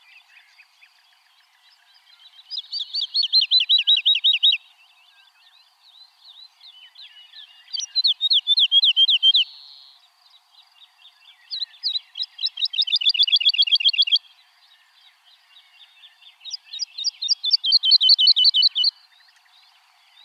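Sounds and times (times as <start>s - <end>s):
woodlark Alouette lulu singing: 2.2s - 5.4s, 6.4s - 10.0s, 10.9s - 20.2s.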